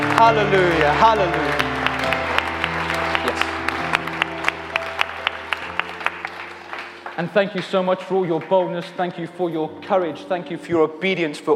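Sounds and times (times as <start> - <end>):
audience applause: 0.0 - 9.0
speech: 0.2 - 1.8, 7.2 - 11.5.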